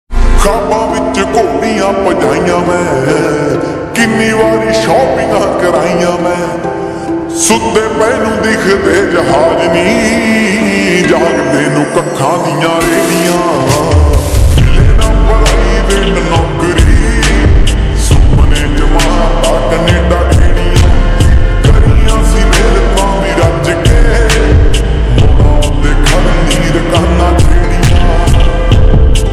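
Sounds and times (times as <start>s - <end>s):
slowed reverb Punjabi ringtone: 0.2s - 29.3s.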